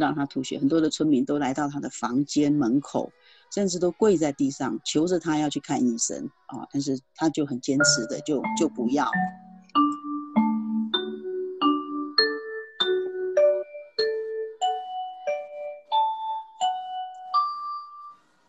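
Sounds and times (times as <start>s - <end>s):
speech: 0.0s - 9.9s
school bell ringing for end of class: 7.8s - 18.2s.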